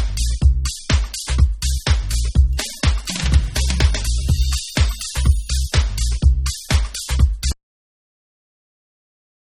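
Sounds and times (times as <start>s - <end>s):
instrumental mix: 0.0s - 7.6s.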